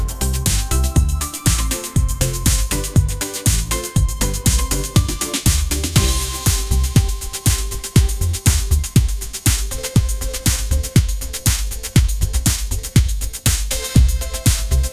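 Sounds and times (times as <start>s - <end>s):
bright pop ringtone groove: 0.0s - 14.9s.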